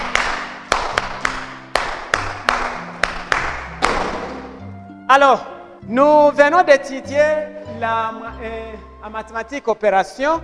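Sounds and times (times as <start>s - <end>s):
classroom clapping applause: 0.0s - 4.5s
speech: 5.1s - 10.4s.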